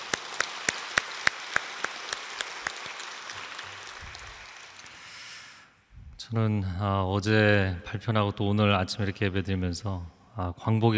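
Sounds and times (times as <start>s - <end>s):
audience clapping in unison: 0.0s - 5.6s
speech: 6.3s - 10.9s.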